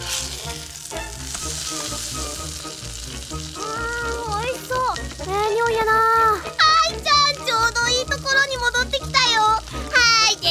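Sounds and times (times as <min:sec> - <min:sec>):
omelette batter made with milk sizzling in a frying pan: 0:00.0 - 0:10.4.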